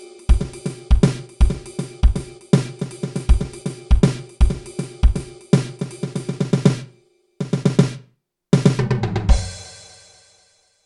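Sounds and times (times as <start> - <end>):
slow syncopated drum kit solo: 0.0 - 10.4.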